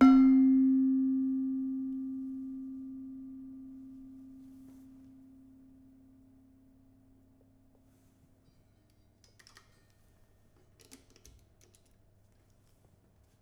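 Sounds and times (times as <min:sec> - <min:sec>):
demung gamelan metallophone: 0:00.0 - 0:04.2.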